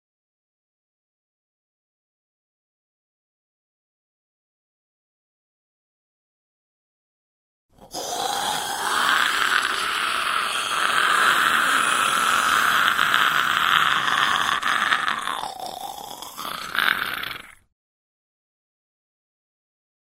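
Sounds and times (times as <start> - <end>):
zombie moan: 7.8 - 17.7.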